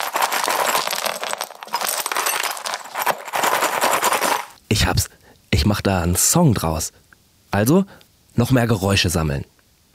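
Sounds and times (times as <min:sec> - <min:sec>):
broken glass shards clinking and rattling: 0:00.0 - 0:04.5
speech: 0:04.7 - 0:07.0, 0:07.6 - 0:09.5.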